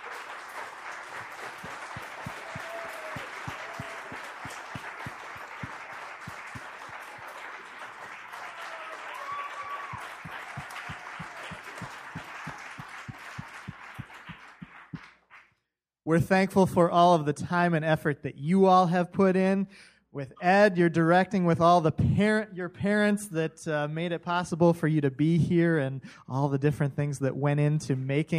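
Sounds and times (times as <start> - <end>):
audience applause for performers: 0.0 - 15.4
speech: 16.1 - 28.3.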